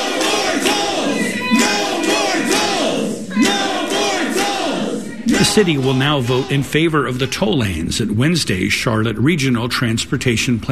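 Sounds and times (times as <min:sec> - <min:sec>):
crowd shouting inside a council chamber: 0:00.0 - 0:07.3
speech: 0:05.6 - 0:10.7.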